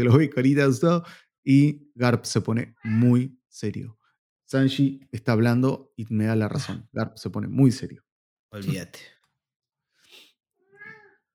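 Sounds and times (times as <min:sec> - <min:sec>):
speech: 0:00.0 - 0:09.2
cat meowing: 0:10.6 - 0:11.2.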